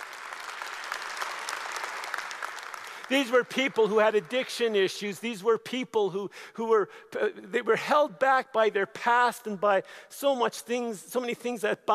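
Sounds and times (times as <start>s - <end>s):
audience applauding: 0.0s - 4.8s
speech: 3.1s - 11.9s.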